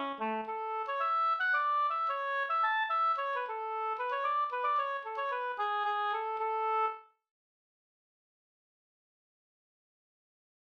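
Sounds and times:
slangpolska folk dance tune: 0:00.0 - 0:07.0.

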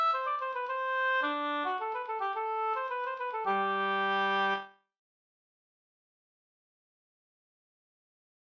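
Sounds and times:
polska folk dance tune: 0:00.0 - 0:04.7.

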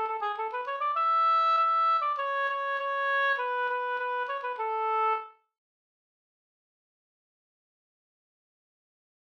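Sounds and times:
polka music: 0:00.0 - 0:05.3.

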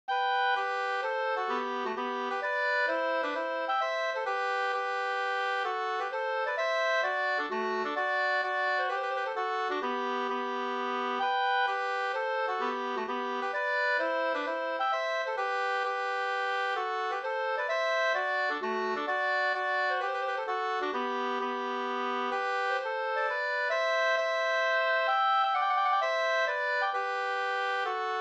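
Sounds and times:
hambo polska folk dance tune: 0:00.1 - 0:28.2.

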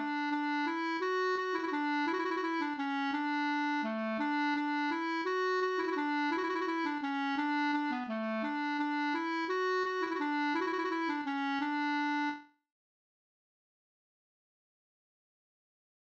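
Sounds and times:
waltz in D major: 0:00.0 - 0:12.4.

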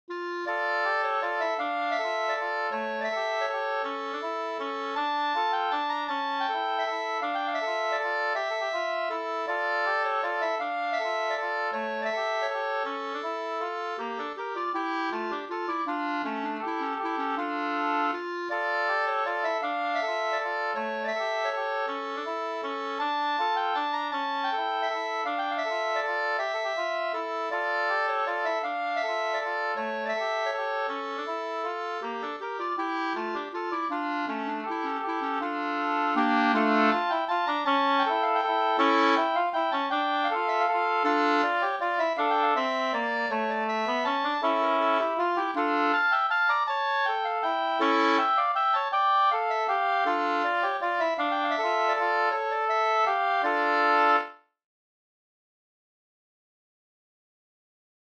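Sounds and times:
waltz in two parts: 0:00.1 - 0:54.4.

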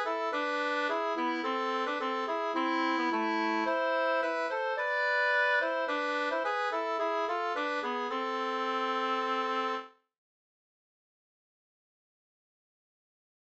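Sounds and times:
folk walking tune: 0:00.0 - 0:09.9.

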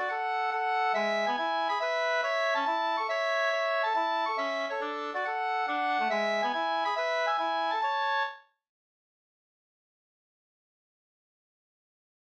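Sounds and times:
hambo polska folk dance tune: 0:00.0 - 0:08.3.

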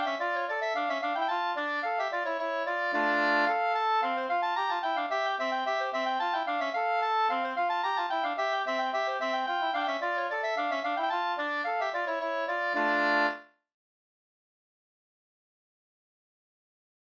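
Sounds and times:
slangpolska folk dance tune: 0:00.0 - 0:13.4.

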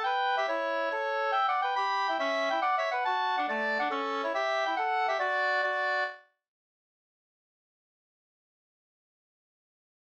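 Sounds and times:
hambo polska folk dance tune: 0:00.0 - 0:06.2.

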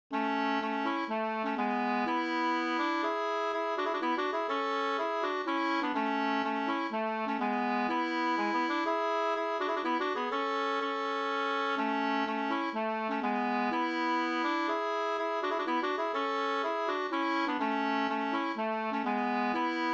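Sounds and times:
pols folk dance tune: 0:00.1 - 0:19.9.

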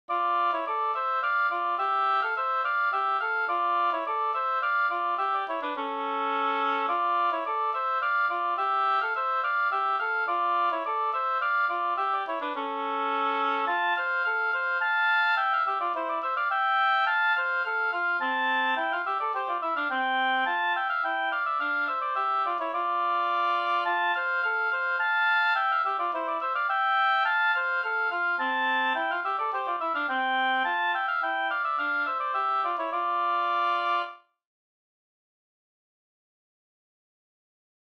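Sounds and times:
slängpolska folk dance tune: 0:00.1 - 0:34.2.

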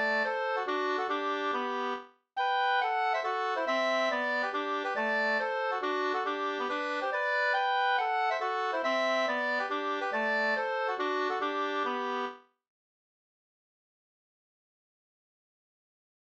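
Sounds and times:
two-part polska folk dance tune: 0:00.0 - 0:12.4.

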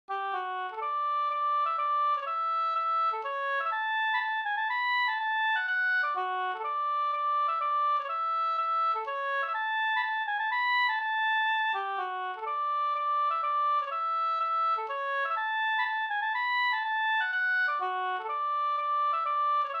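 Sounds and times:
polska folk tune: 0:00.1 - 0:19.7.

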